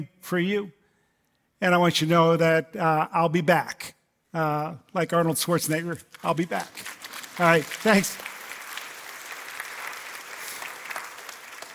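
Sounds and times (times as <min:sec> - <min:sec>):
speech: 0:00.0 - 0:00.8, 0:01.6 - 0:08.3
audience applause: 0:06.4 - 0:11.7.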